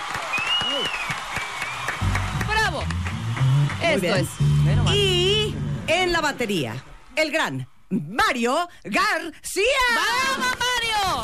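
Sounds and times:
audience applause: 0:00.0 - 0:05.9, 0:10.1 - 0:11.2
speech: 0:03.9 - 0:05.2, 0:05.9 - 0:11.2.

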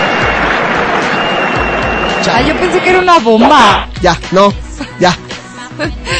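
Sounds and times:
looped applause sound effect: 0:00.0 - 0:03.8
speech: 0:02.3 - 0:05.2, 0:05.8 - 0:06.1.

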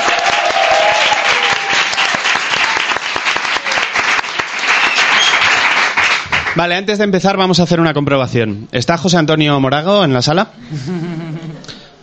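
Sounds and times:
audience applause: 0:00.0 - 0:06.6
speech: 0:06.6 - 0:11.3
laughter: 0:10.6 - 0:11.8.

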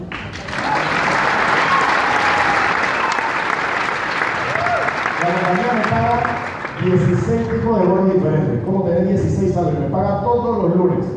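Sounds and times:
audience applause: 0:00.0 - 0:07.5
speech: 0:06.8 - 0:11.1.

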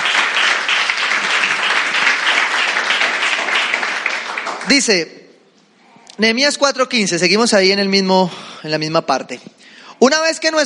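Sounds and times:
audience applause: 0:00.0 - 0:05.0
speech: 0:04.7 - 0:05.2, 0:06.2 - 0:10.6.

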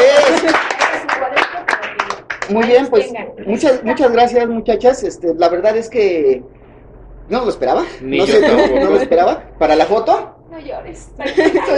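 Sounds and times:
laughter: 0:00.0 - 0:01.1, 0:08.1 - 0:09.4, 0:11.2 - 0:11.7
audience applause: 0:00.0 - 0:02.9
speech: 0:02.5 - 0:06.6, 0:07.3 - 0:11.7.

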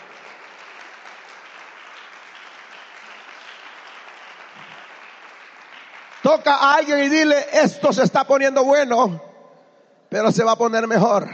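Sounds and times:
applause: 0:00.0 - 0:07.3
speech: 0:06.2 - 0:09.3, 0:10.1 - 0:11.3.

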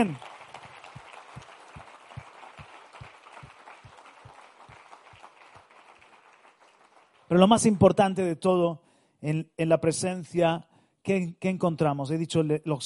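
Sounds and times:
speech: 0:00.0 - 0:00.3, 0:07.3 - 0:12.8
applause: 0:00.0 - 0:08.2.

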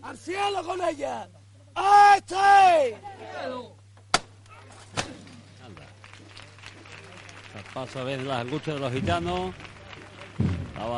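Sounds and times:
speech: 0:00.1 - 0:03.8, 0:07.6 - 0:09.7, 0:10.8 - 0:10.9
crowd applause, restrained ovation: 0:05.6 - 0:10.9.

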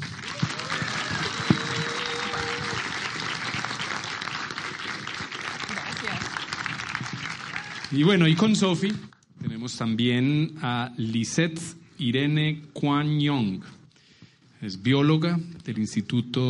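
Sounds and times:
audience applause: 0:00.0 - 0:08.6
speech: 0:07.9 - 0:13.7, 0:14.6 - 0:16.4.

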